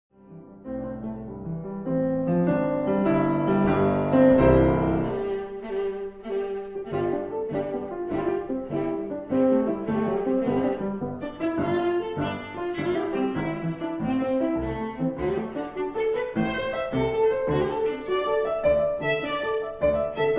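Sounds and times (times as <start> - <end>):
piano: 0.1 - 20.3
viola: 0.9 - 20.3.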